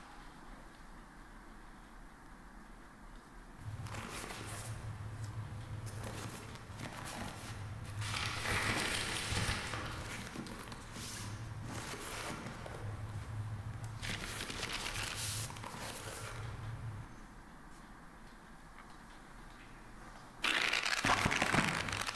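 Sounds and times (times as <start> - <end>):
medieval office ambience: 3.6 - 17.0, 21.1 - 22.0.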